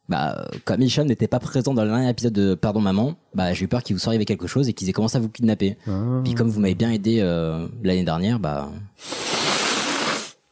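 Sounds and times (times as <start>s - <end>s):
speech: 0.1s - 9.3s
person sniffing: 9.0s - 10.4s.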